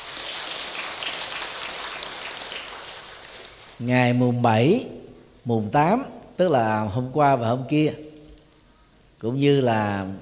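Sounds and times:
loud applause: 0.0 - 3.8
speech: 3.8 - 8.1, 9.2 - 10.2.

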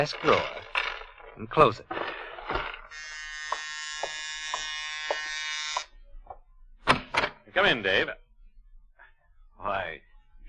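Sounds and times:
speech: 0.0 - 0.6, 1.4 - 2.6, 7.6 - 8.2, 9.6 - 10.1
buzzer-style doorbell: 2.9 - 5.9
faint regular taps: 3.5 - 6.4.

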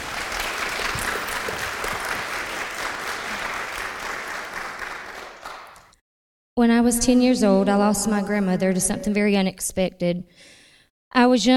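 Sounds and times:
audience applause: 0.0 - 5.9
speech: 6.6 - 11.5.

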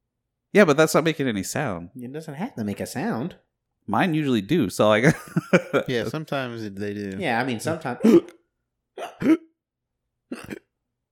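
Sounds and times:
speech: 0.5 - 8.4, 9.0 - 9.5, 10.3 - 10.6
laughter: 5.0 - 7.1
person imitating hiccups: 8.0 - 8.4, 9.0 - 9.6, 10.3 - 10.7.

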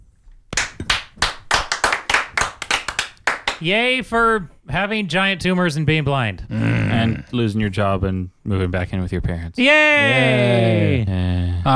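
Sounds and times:
applause: 0.6 - 3.6
speech: 3.6 - 11.7.

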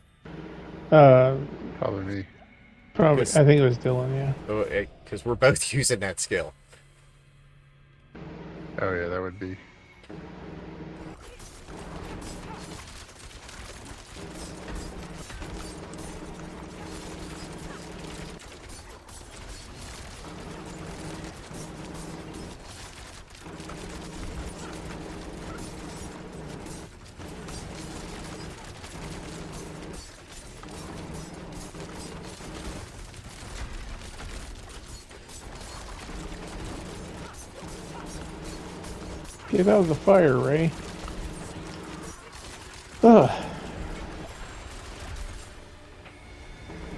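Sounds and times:
speech: 0.9 - 2.4, 3.0 - 6.6, 8.8 - 10.3, 39.6 - 40.9
rapid gunfire in a video game: 10.1 - 45.8.

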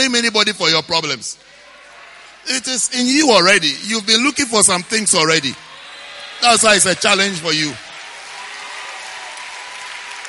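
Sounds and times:
speech: 0.0 - 1.6, 2.4 - 5.7, 6.4 - 7.8
women clapping: 7.7 - 10.2.

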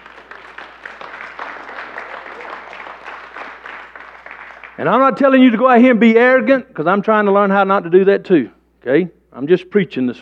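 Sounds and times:
audience clapping: 0.0 - 5.2
speech: 4.8 - 10.2.

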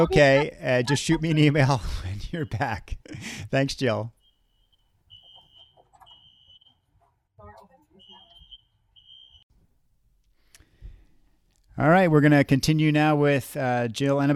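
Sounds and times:
speech: 0.0 - 4.2, 11.8 - 14.3
building fire alarm: 4.2 - 6.8, 8.0 - 9.4.

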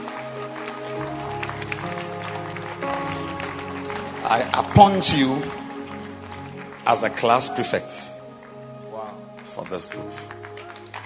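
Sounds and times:
audience clapping hands: 0.0 - 11.0
speech: 4.3 - 5.6, 6.9 - 8.1, 9.7 - 10.4.

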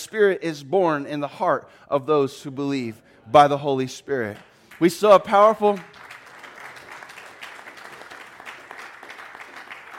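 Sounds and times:
speech: 0.0 - 6.0
audience clapping: 4.3 - 9.9.

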